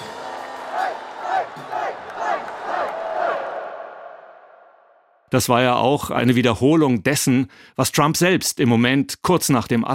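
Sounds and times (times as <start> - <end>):
supporters cheering at party convention: 0.0 - 5.0
speech: 5.3 - 9.9.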